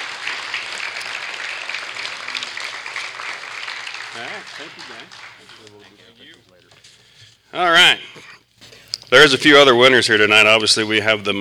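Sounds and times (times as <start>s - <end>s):
audience applause: 0.0s - 6.4s
speech: 4.2s - 6.5s, 7.5s - 8.3s, 9.1s - 11.3s.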